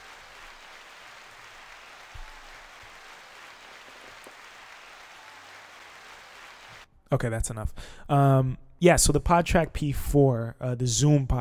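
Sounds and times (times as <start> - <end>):
hand clap sound effect: 0.0 - 6.8
speech: 7.1 - 11.3.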